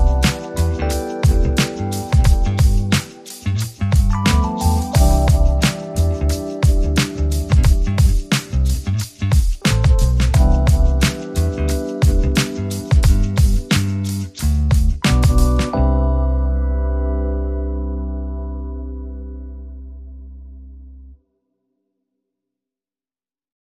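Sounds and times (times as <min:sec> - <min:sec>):
drums: 0:00.0 - 0:15.8
bass: 0:00.0 - 0:21.2
keyboard: 0:00.0 - 0:21.2.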